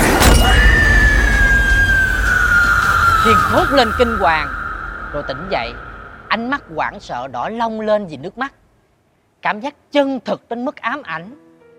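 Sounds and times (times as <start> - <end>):
glass liquor bottle smashed over someone's head: 0.0 - 1.2
high ringing tone: 0.0 - 7.6
speech: 3.2 - 8.6, 9.4 - 11.4.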